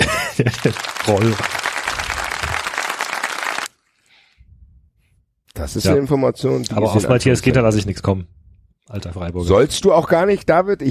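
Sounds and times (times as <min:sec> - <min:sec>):
laughter: 0:00.0 - 0:03.0
dense crowd applause sound effect: 0:00.0 - 0:03.7
speech: 0:00.4 - 0:01.7, 0:05.6 - 0:10.8.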